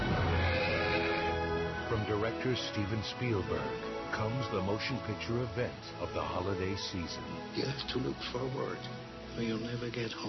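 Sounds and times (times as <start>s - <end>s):
horse neighing in the War Horse film trailer: 0.2s - 1.5s
speech: 2.0s - 10.2s.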